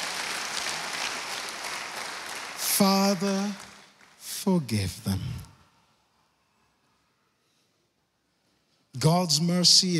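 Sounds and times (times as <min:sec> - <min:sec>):
audience clapping hands in praise: 0:00.0 - 0:05.5
speech: 0:02.8 - 0:03.7, 0:04.4 - 0:05.5, 0:09.0 - 0:09.9.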